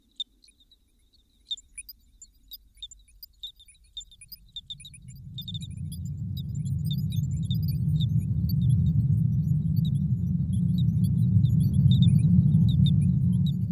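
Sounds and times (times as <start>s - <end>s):
shared soundscape: 4.0s - 13.7s.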